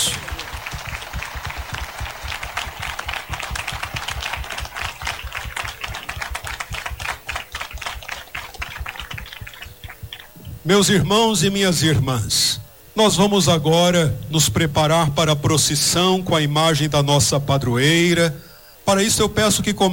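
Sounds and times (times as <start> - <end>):
audience applause: 0.0 - 10.4
speech: 10.7 - 19.9.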